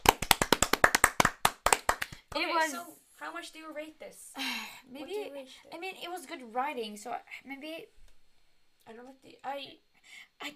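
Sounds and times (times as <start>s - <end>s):
small group clapping: 0.0s - 2.7s
speech: 2.4s - 8.0s, 8.8s - 10.5s.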